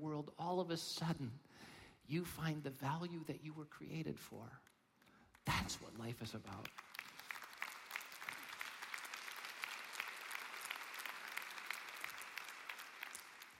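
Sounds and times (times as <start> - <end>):
speech: 0.0 - 4.7, 5.5 - 6.9
audience applause: 6.6 - 13.5.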